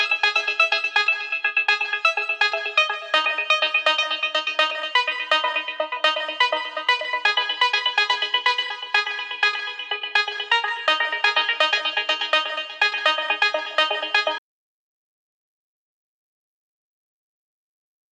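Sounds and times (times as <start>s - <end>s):
melodic techno music: 0.0s - 14.4s.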